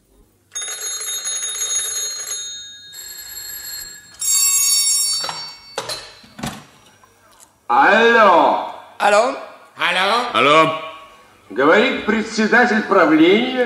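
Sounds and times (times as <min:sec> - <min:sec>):
telephone bells ringing: 0:00.5 - 0:06.8
speech: 0:07.7 - 0:10.8, 0:11.5 - 0:13.6.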